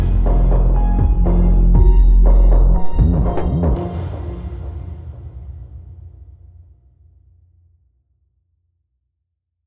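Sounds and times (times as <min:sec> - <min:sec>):
dark mystical adventure music loop: 0:00.0 - 0:05.1.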